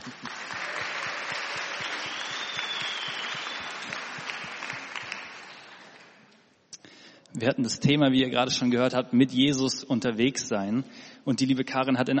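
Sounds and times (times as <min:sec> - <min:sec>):
audience applause: 0:00.0 - 0:06.2
speech: 0:00.1 - 0:00.4, 0:07.4 - 0:12.1.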